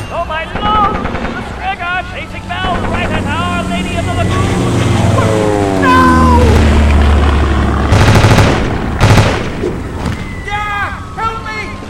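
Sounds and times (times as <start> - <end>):
aircraft machine-gun strafing fire: 0.5 - 1.7, 7.8 - 9.9
aircraft engine drone: 0.9 - 11.8.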